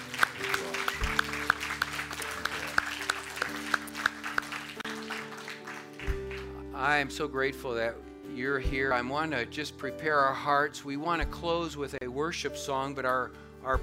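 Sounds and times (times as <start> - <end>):
audience applauding: 0.0 - 6.7
speech: 6.8 - 13.8.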